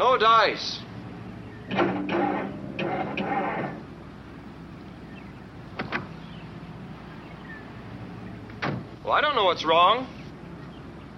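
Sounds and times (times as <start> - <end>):
speech: 0.0 - 0.8, 9.1 - 10.2
car engine failing to start: 1.2 - 4.0.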